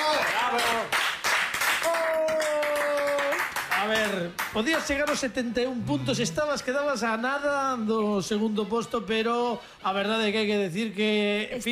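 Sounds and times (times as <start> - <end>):
audience applause: 0.0 - 5.2
speech: 3.9 - 11.7.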